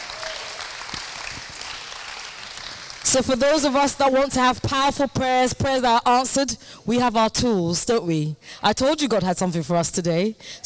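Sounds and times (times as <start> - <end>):
audience applause: 0.0 - 3.1
speech: 3.1 - 10.6.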